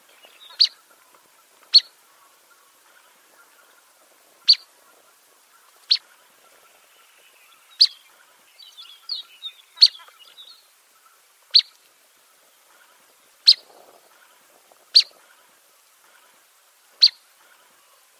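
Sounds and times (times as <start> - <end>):
bird chirping: 0.0 - 1.0, 1.7 - 3.8, 4.4 - 11.8, 17.0 - 17.9
soft twittering: 0.0 - 18.0.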